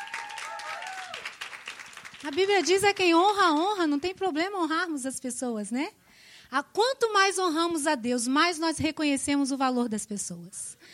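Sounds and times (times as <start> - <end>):
audience applause: 0.0 - 2.7
speech: 2.2 - 10.9.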